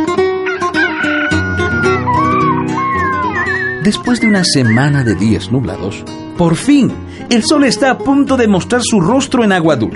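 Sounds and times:
rooster crowing: 0.4 - 3.8
birds waking at dawn: 0.4 - 5.8
speech: 3.8 - 9.9.

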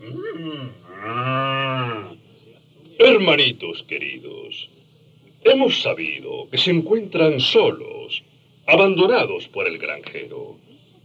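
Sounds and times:
speech: 0.0 - 1.2, 3.2 - 4.8, 5.4 - 11.0
bull bellowing: 0.0 - 2.2.

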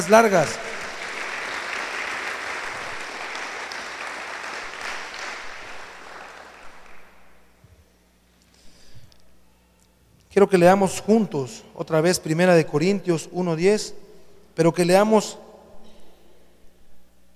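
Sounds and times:
speech: 0.0 - 0.8, 10.4 - 14.0, 14.6 - 15.5
audience applauding: 0.0 - 7.4.

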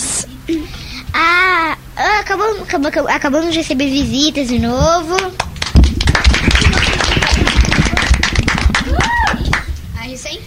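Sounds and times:
speech: 0.5 - 1.4, 2.0 - 5.5
hand clapping: 5.1 - 9.8.

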